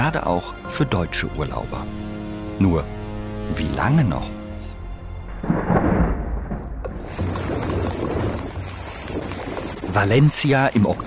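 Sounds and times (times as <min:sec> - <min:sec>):
speech: 0:00.0 - 0:04.4, 0:09.9 - 0:11.0
torrential rain on the east coast of Spain: 0:04.8 - 0:11.0.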